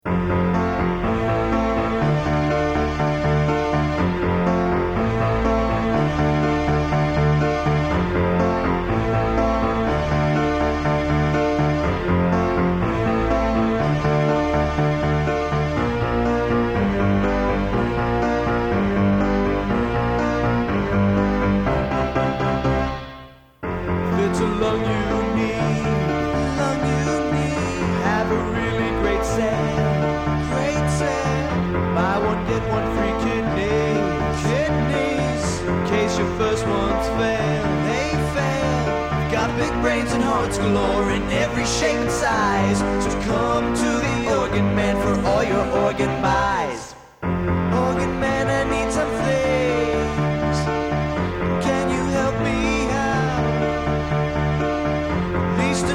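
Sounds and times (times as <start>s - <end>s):
organ: 0.0s - 55.9s.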